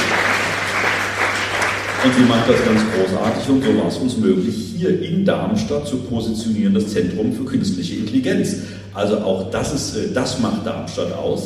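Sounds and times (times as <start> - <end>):
audience applause: 0.0 - 4.0
speech: 2.0 - 11.4.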